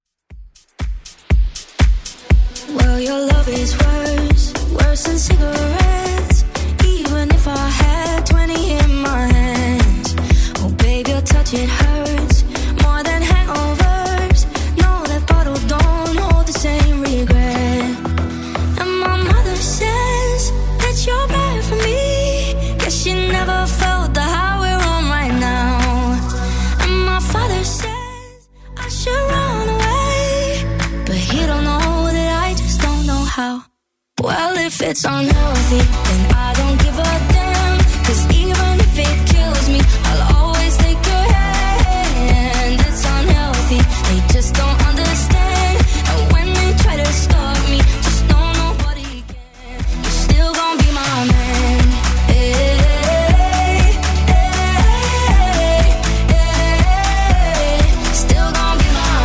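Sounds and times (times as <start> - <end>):
Top40 club dance music at 120 bpm: 0.4 - 28.2, 29.3 - 33.4, 34.4 - 59.2.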